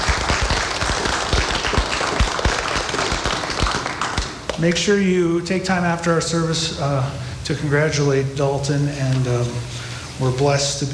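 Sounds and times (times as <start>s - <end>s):
audience clapping: 0.0s - 4.8s
speech: 4.6s - 10.9s.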